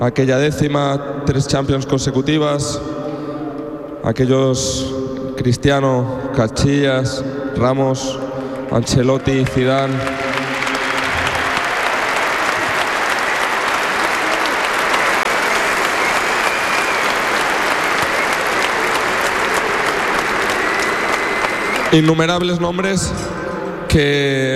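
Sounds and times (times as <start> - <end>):
speech: 0.0 - 3.0, 4.0 - 10.3, 21.9 - 24.5
audience applauding loudly: 8.4 - 22.5.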